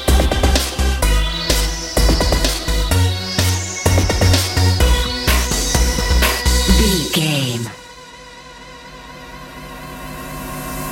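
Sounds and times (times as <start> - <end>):
house music: 0.0 - 7.8.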